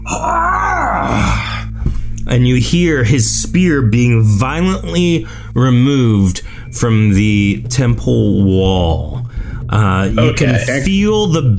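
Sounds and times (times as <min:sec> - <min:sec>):
sea creature warrior screaming: 0:00.0 - 0:01.7
speech: 0:02.3 - 0:11.5.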